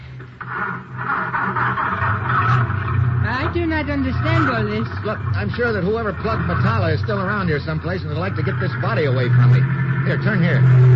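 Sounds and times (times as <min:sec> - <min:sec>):
car engine starting and revving: 0:01.5 - 0:10.9
speech: 0:03.6 - 0:10.9.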